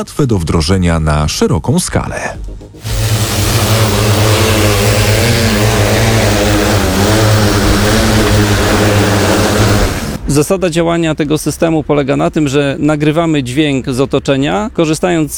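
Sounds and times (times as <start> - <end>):
speech: 0.0 - 5.6, 10.3 - 15.3
drone in flight propeller buzz: 2.7 - 10.3.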